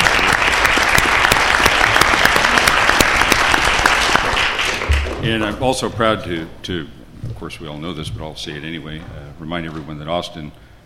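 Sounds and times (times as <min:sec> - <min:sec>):
audience round of applause: 0:00.0 - 0:05.6
speech: 0:05.2 - 0:10.6.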